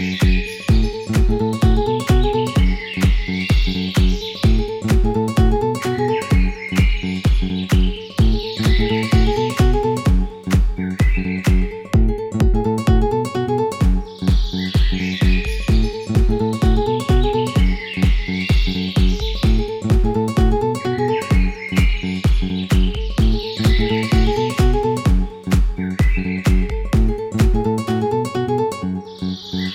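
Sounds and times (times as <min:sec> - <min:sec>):
house music mix: 0:00.0 - 0:29.7.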